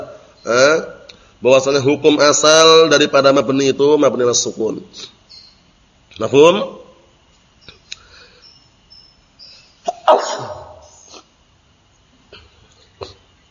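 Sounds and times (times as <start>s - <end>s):
speech: 0.4s - 5.2s, 6.2s - 6.8s
person sneezing: 9.8s - 11.3s.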